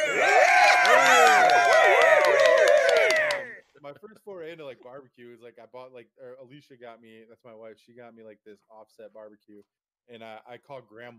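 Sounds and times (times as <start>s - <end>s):
crowd cheering and whooping: 0.0s - 3.6s
scattered clapping: 0.0s - 3.6s
speech: 4.0s - 11.1s.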